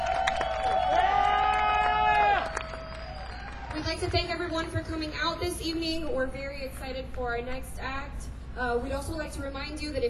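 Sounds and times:
audience cheering with whoops: 0.0 - 3.8
speech: 4.0 - 10.0.

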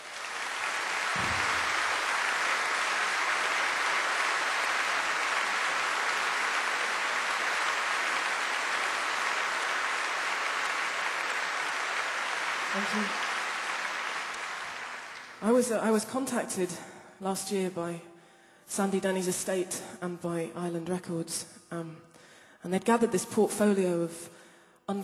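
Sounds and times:
crowd applauding: 0.0 - 15.5
speech: 12.8 - 13.2, 15.4 - 18.1, 18.7 - 25.0.

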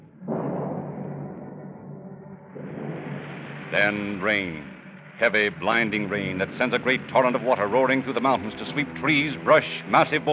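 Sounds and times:
rumbling thunder: 0.0 - 7.1
speech: 3.7 - 10.3.

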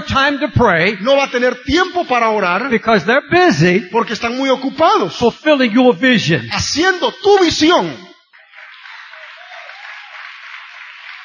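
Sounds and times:
speech: 0.1 - 8.1
crowd applauding: 8.2 - 11.2.

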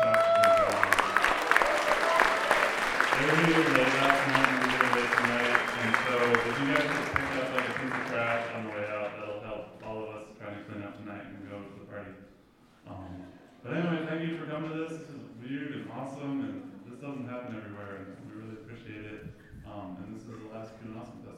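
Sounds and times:
people shouting and whooping: 0.0 - 3.3
crowd clapping: 0.0 - 9.4
speech: 3.2 - 9.3, 12.9 - 18.2, 18.9 - 21.3.

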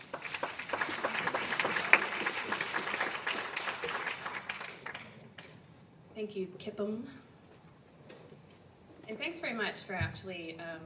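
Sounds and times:
audience round of applause: 0.0 - 5.5
speech: 6.2 - 7.2, 9.1 - 10.8.

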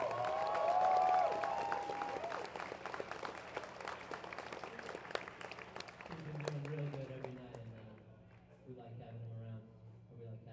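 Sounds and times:
high whoop: 0.0 - 2.6
crowd cheering: 0.0 - 7.0
audience applause: 0.0 - 7.4.

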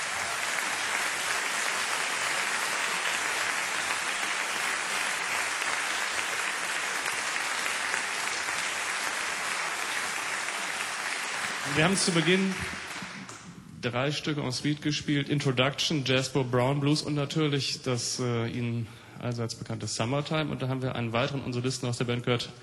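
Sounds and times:
audience applause: 0.0 - 13.5
speech: 11.7 - 12.8, 13.8 - 22.6.

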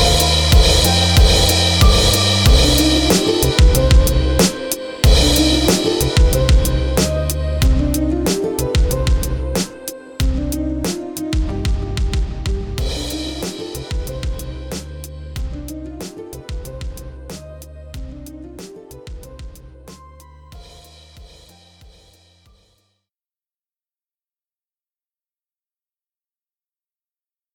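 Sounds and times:
short guitar song: 0.0 - 20.4.

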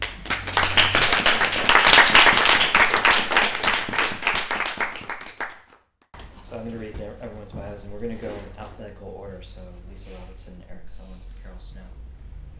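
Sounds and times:
audience applause: 0.0 - 5.7
speech: 8.0 - 12.0.

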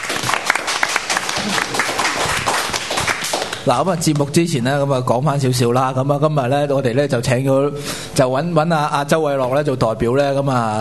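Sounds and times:
audience applause: 0.0 - 3.6
speech: 3.7 - 10.8.

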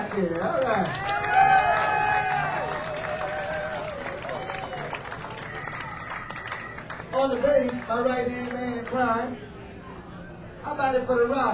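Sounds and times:
audience applause for guitarist: 0.0 - 7.9
speech: 0.2 - 1.2, 7.2 - 9.5, 10.6 - 11.5.

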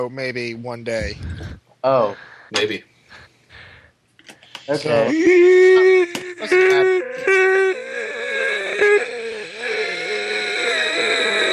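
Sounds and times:
speech: 0.0 - 3.3, 4.7 - 8.2
yawning: 4.8 - 11.5.

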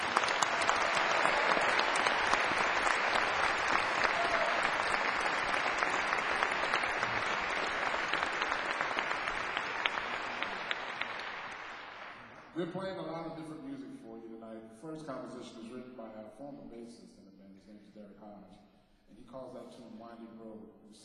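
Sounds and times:
audience applause: 0.0 - 12.5
speech: 12.7 - 13.5, 15.1 - 21.0.

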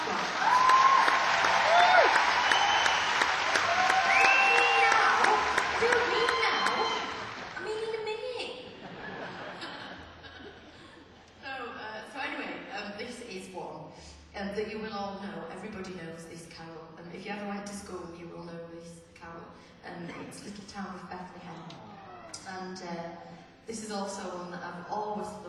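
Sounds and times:
cheers and whoops: 0.0 - 7.5
audience clapping: 0.0 - 8.0
laughter: 8.6 - 11.2.

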